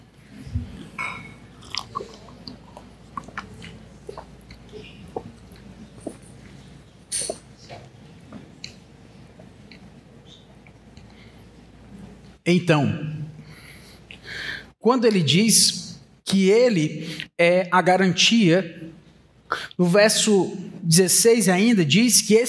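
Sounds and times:
person drinking water: 0.6 - 6.8
speech: 12.5 - 13.1, 14.8 - 15.8, 16.4 - 18.8, 19.5 - 22.4.

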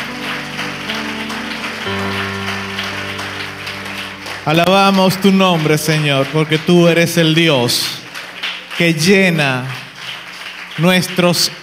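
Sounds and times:
held musical chords: 0.0 - 7.6
loud sustained applause: 0.0 - 11.6
speech: 4.5 - 8.0, 8.8 - 9.8, 10.8 - 11.6.

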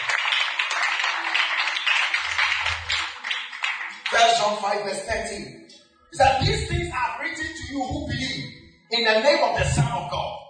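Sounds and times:
congregation clapping hands during a church service: 0.0 - 5.0
speech: 4.1 - 10.4.

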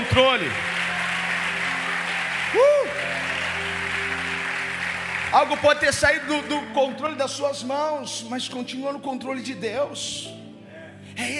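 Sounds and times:
audience applauding: 0.0 - 6.6
speech: 0.2 - 0.7, 2.5 - 3.0, 5.3 - 10.4, 11.2 - 11.3.

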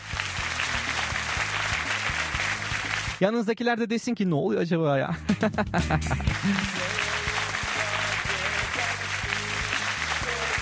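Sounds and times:
applause: 0.0 - 3.2, 6.3 - 10.5
speech: 3.2 - 6.9
laughter: 5.1 - 10.5.

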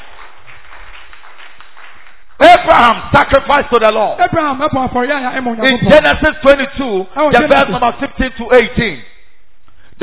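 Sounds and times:
crowd clapping hands: 0.0 - 3.4
speech: 2.7 - 9.1.

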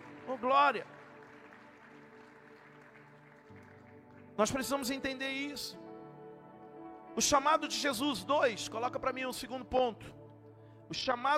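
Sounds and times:
audience applauding: 0.0 - 5.1
speech: 0.3 - 1.0, 4.4 - 5.8, 7.2 - 10.2, 10.9 - 11.3.

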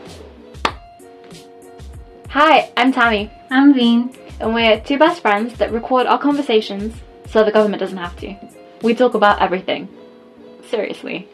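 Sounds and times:
hand clap: 0.6 - 0.9
speech: 2.3 - 10.0, 10.6 - 11.3.

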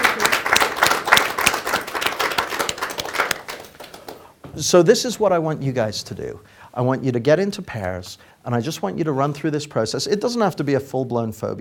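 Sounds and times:
crowd applauding: 0.0 - 4.2
speech: 4.6 - 11.5.

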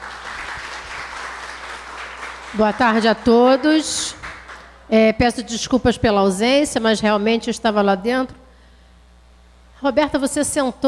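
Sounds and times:
audience applause: 0.0 - 4.7
speech: 2.5 - 4.2, 4.9 - 8.4, 9.8 - 10.8.

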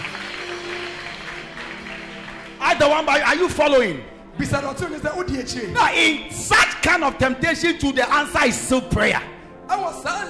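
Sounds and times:
church congregation clapping their hands together: 0.0 - 4.0
speech: 2.7 - 9.3, 9.9 - 10.2.

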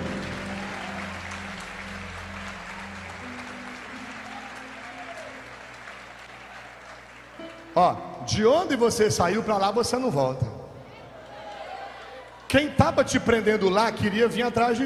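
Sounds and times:
audience applauding: 0.0 - 8.2
speech: 7.8 - 10.6, 12.5 - 14.8.

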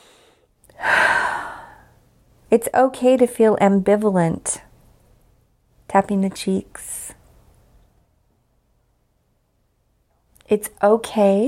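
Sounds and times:
big deep breath drawn in and let out slowly during a tapping exercise: 0.0 - 2.1
speech: 2.5 - 4.6, 5.9 - 6.9, 10.5 - 11.4.

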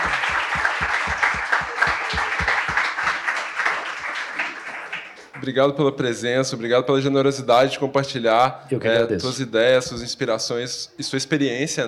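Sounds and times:
audience applause: 0.0 - 5.5
speech: 5.4 - 11.8.

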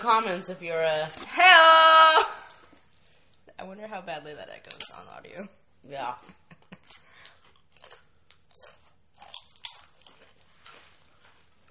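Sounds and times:
speech: 0.0 - 2.4, 3.6 - 7.0
people chewing food: 6.5 - 11.6
crunchy bites: 6.9 - 10.9.

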